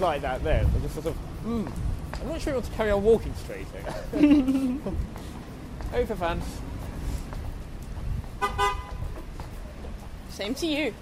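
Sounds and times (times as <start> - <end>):
speech: 0.0 - 6.7, 10.4 - 10.9
low rumble of road traffic: 0.0 - 10.9
laughter: 3.7 - 5.2
car horn beeps: 8.4 - 9.0.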